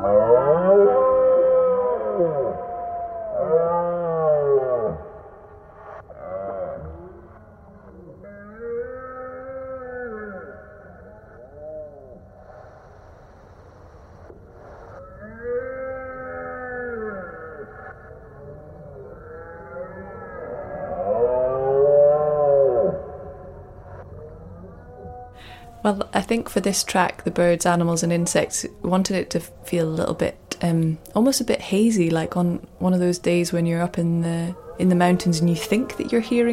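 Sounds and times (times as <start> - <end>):
deep drawn-out deer roars altered to sound eerie and warped: 0.0 - 12.5, 14.9 - 25.9
speech: 25.9 - 36.5.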